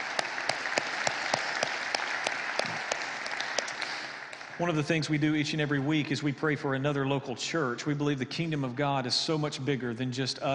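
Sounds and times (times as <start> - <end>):
church congregation applauding for the online and television audience: 0.0 - 6.0
speech: 4.6 - 10.5.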